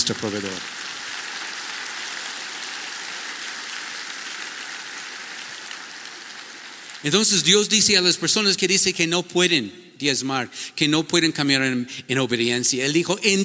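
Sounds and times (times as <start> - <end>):
speech: 0.0 - 0.8, 7.0 - 13.4
audience applauding: 0.0 - 7.1.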